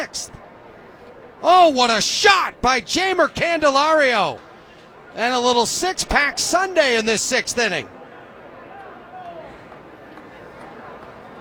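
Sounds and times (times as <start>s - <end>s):
baseball crowd groaning at home run: 0.0s - 0.4s, 1.4s - 4.4s, 5.2s - 7.9s
speech: 0.0s - 0.4s, 1.4s - 4.4s, 5.2s - 8.0s.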